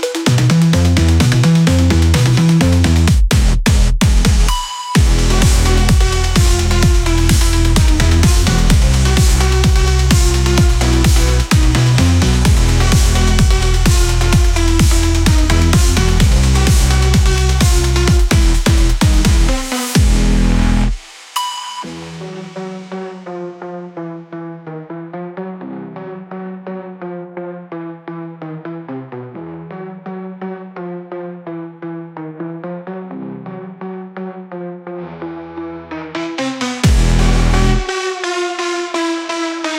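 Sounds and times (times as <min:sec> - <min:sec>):
instrumental techno music: 0:00.0 - 0:33.9, 0:35.0 - 0:39.7.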